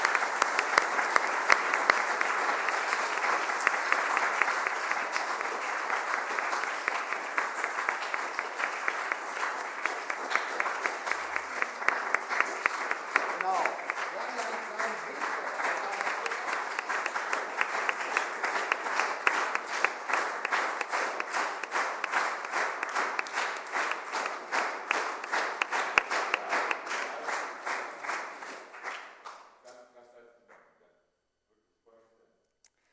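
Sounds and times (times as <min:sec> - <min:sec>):
large crowd applauding: 0:00.0 - 0:29.4.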